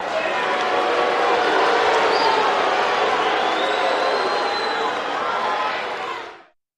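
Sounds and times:
crowd booing in a short burst: 0.0s - 6.6s.

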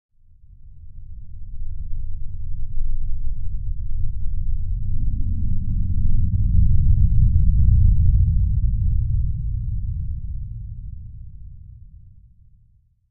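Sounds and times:
low-frequency electronic rumble wash: 2.1s - 11.9s.

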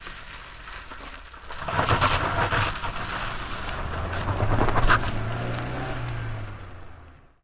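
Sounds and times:
gritty car tires peeling out heard on board: 1.6s - 7.4s.

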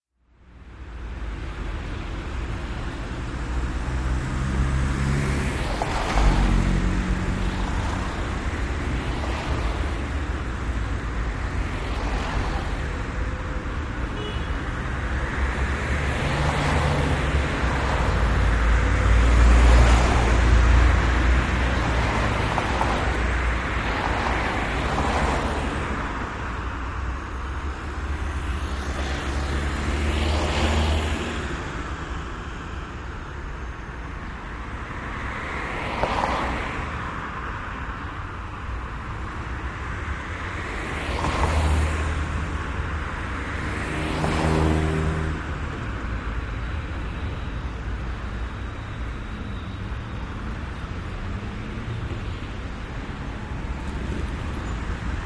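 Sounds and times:
big city street traffic: 0.0s - 55.2s.

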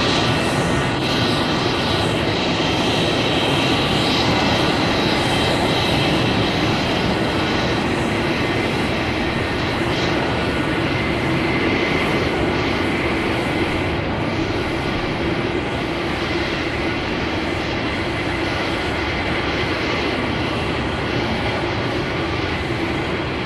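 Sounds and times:
jet engine warming up and taxiing out at an airport: 0.0s - 23.4s.

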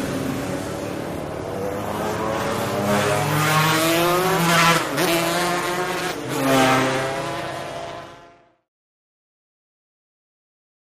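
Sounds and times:
motorcycles road racing: 0.0s - 8.7s.

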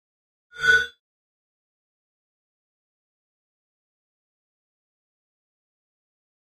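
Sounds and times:
electronic mouse over interface sound: 0.6s - 0.9s.

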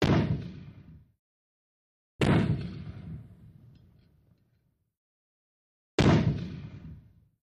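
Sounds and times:
80 mm mortar firing at medium distance: 0.0s - 1.0s, 2.2s - 3.4s, 6.0s - 7.0s.

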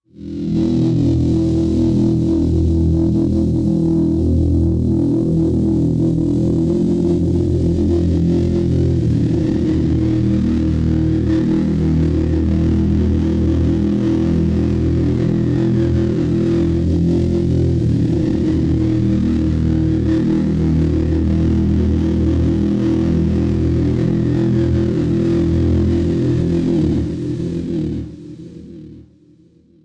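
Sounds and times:
low electronic sound: 0.1s - 29.1s.

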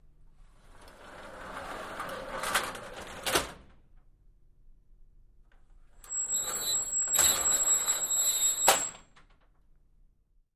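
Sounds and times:
sliding metal accordion door opening and closing: 0.7s - 3.7s, 6.1s - 9.1s.

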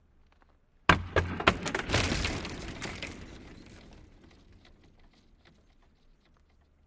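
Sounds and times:
hockey player's stick hitting: 0.9s - 2.7s.

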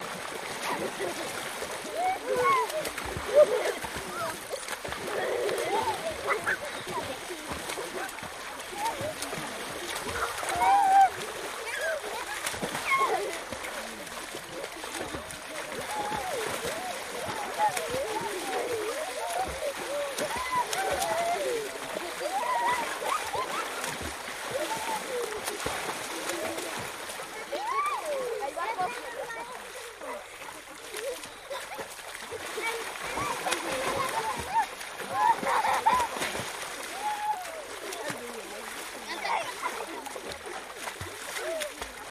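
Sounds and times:
Venezuelan children playing: 0.0s - 42.0s
laughter: 0.5s - 42.0s.

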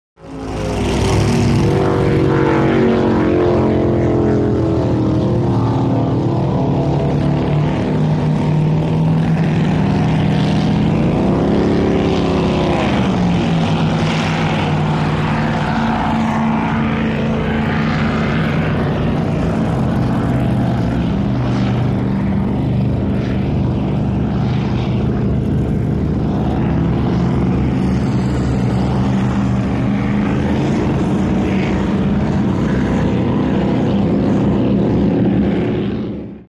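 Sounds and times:
offshore power boats passing slowly: 0.2s - 36.4s.

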